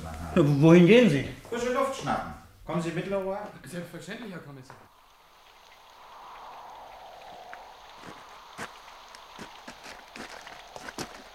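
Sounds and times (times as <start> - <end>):
steady rain: 0.0 - 11.3
speech: 0.4 - 4.9
footsteps squelching through wet sand in rain: 8.0 - 11.3.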